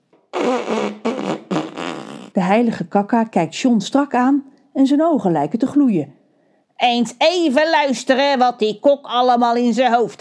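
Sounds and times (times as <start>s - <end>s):
nose being blown into an apron: 0.3s - 2.4s
speech: 2.4s - 6.2s, 6.8s - 10.2s.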